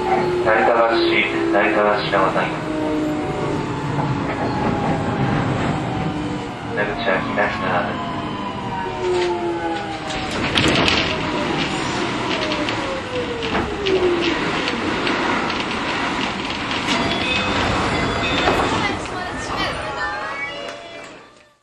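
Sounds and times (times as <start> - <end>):
8000 series train running with inverter control: 0.0 - 21.6.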